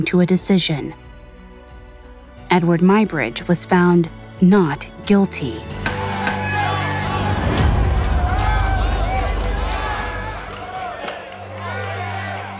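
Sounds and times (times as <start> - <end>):
speech: 0.0 - 1.1, 2.5 - 5.9
courtroom crowd erupting in excitement: 5.8 - 12.5.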